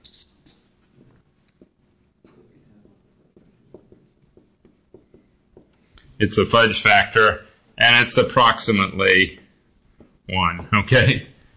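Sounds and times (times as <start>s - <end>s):
writing on a board during a lecture: 0.0s - 6.8s
speech: 6.2s - 9.4s, 10.3s - 11.3s.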